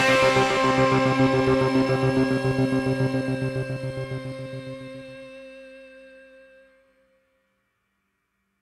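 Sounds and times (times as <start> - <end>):
pop rock Christmas carol: 0.0 - 4.6.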